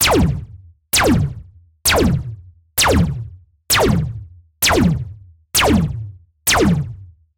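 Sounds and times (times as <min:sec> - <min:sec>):
blaster gun firing: 0:00.0 - 0:00.4, 0:01.0 - 0:05.0, 0:05.6 - 0:06.9.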